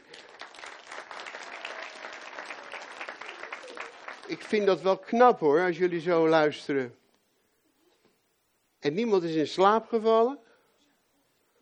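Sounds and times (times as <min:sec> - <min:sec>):
children applauding: 0:00.0 - 0:04.6
speech: 0:04.3 - 0:07.0, 0:08.8 - 0:10.5.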